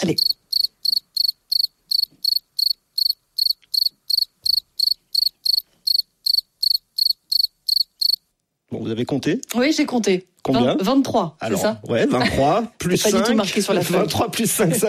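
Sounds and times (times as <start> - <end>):
speech: 0.0 - 0.4, 8.7 - 14.8
cricket chirping: 0.0 - 8.3.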